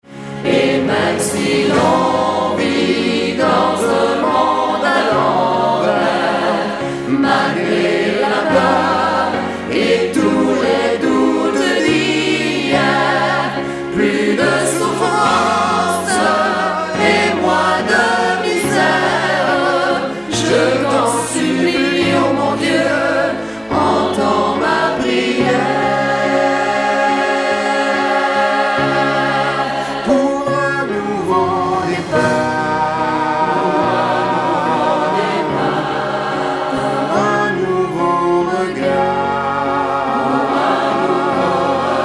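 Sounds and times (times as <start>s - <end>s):
SATB vocal duet: 0.2s - 42.0s.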